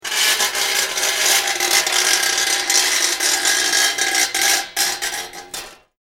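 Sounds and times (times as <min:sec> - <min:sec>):
intense high-pitched metal screech: 0:00.0 - 0:05.6.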